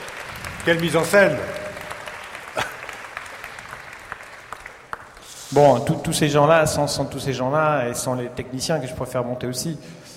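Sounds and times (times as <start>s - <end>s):
audience applause: 0.0s - 5.5s
speech: 0.6s - 1.6s, 5.5s - 10.0s.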